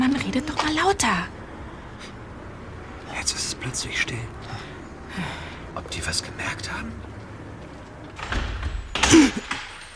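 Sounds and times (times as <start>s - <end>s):
speech: 0.4s - 1.4s, 3.2s - 7.1s
front door opening: 7.6s - 9.9s.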